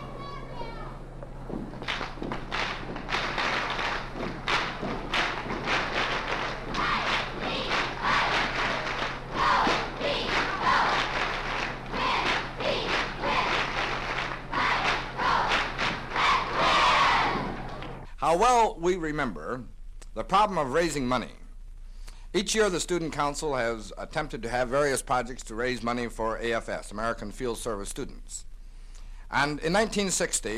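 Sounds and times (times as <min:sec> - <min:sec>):
cheerleaders leading a school cheer: 0:00.0 - 0:01.0, 0:02.0 - 0:18.0
speech: 0:18.3 - 0:21.4, 0:22.3 - 0:28.5, 0:29.3 - 0:30.5.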